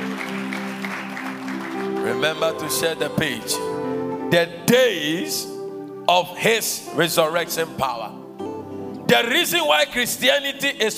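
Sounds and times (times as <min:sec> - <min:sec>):
audience clapping: 0:00.0 - 0:03.1
speech: 0:02.1 - 0:05.5, 0:06.1 - 0:08.2, 0:09.1 - 0:10.9.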